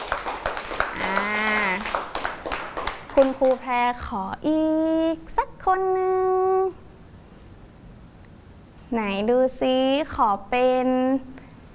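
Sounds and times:
clapping: 0.0 - 3.7
speech: 3.2 - 6.8, 8.9 - 11.3.

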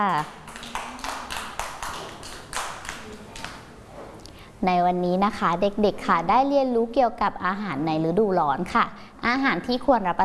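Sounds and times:
speech: 0.0 - 0.4, 4.6 - 10.2
children clapping: 0.0 - 3.7.

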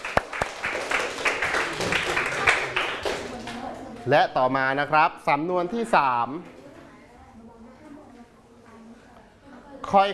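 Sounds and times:
applause from a small group: 0.0 - 3.6
speech: 4.0 - 6.6, 9.9 - 10.1.

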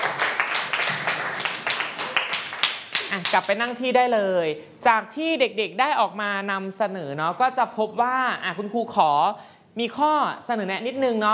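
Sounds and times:
classroom applause: 0.0 - 3.6
speech: 3.3 - 11.3.

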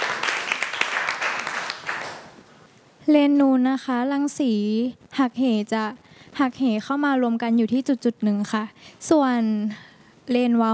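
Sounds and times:
group of students clapping: 0.0 - 2.4
speech: 3.1 - 10.7.

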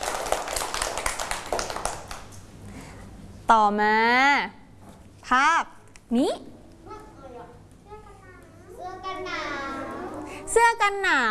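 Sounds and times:
hands clapping: 0.0 - 2.4
speech: 3.5 - 4.6, 5.3 - 6.5, 10.6 - 11.2.

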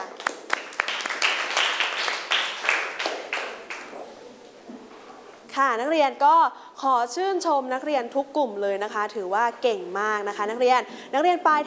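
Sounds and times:
classroom applause: 0.0 - 4.0
speech: 5.6 - 11.6.

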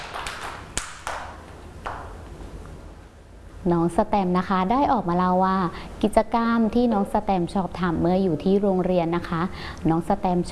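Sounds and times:
children clapping: 0.0 - 2.0
speech: 3.6 - 10.4.

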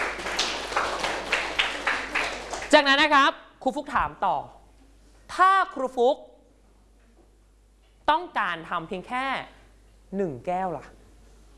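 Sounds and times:
classroom clapping for a classmate: 0.0 - 3.0
speech: 2.7 - 4.6, 5.4 - 6.3, 8.1 - 11.0.

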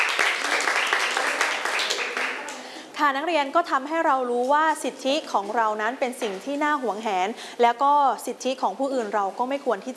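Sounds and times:
students clapping for a classmate in a classroom lesson: 0.0 - 2.7
speech: 3.0 - 9.9.

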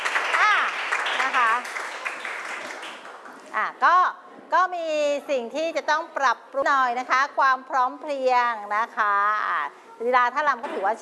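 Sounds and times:
audience applause: 0.0 - 3.4
speech: 3.6 - 11.0.

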